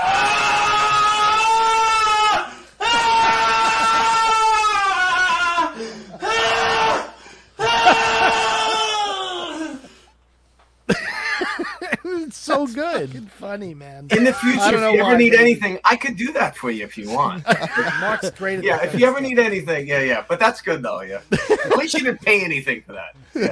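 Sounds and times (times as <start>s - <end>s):
royalty-free scream sound effect: 0.0s - 9.9s
laughter: 2.9s - 6.4s, 7.6s - 10.0s, 10.9s - 13.5s, 14.1s - 15.3s, 17.0s - 19.5s, 21.2s - 22.6s, 23.2s - 23.5s
speech: 13.0s - 23.5s.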